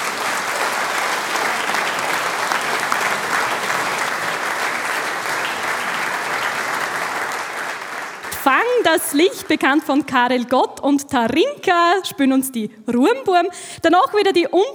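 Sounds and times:
audience applause: 0.0s - 9.8s
speech: 8.8s - 14.7s.

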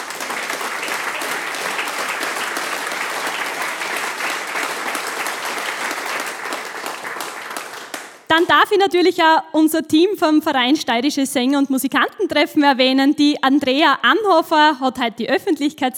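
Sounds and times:
audience applause: 0.0s - 8.3s
speech: 8.4s - 15.9s.

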